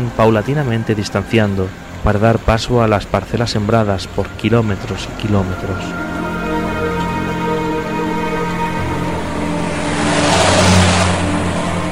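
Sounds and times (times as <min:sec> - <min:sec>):
road noise of accelerating car: 0:00.0 - 0:11.9
speech: 0:00.1 - 0:06.1
car engine humming on a highway: 0:02.8 - 0:11.9.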